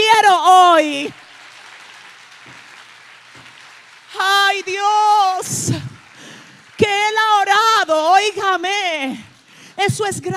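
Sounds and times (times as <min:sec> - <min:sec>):
audience applauding: 0:00.0 - 0:08.2
speech: 0:08.2 - 0:10.3.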